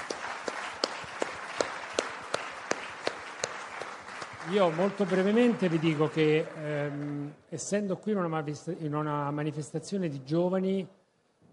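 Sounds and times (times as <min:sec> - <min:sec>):
audience applause: 0:00.0 - 0:07.3
speech: 0:04.5 - 0:11.0.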